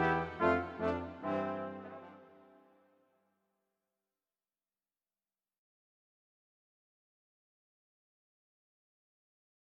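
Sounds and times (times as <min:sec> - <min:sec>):
brass quintet playing a wedding march: 0:00.0 - 0:02.9.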